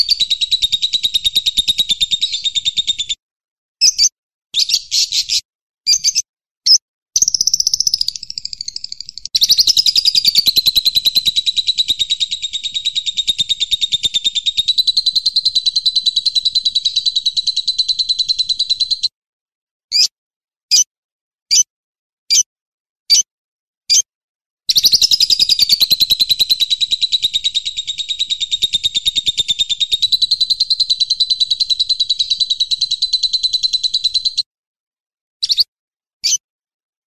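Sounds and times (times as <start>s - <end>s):
grasshopper chirping: 0.0s - 3.1s, 7.2s - 19.1s, 24.7s - 34.4s
cendet bird chirping: 0.0s - 3.2s, 3.8s - 19.1s, 24.7s - 34.4s, 35.4s - 36.4s
lovebird calling: 0.0s - 3.2s, 4.6s - 6.2s, 7.2s - 19.1s, 24.7s - 34.4s.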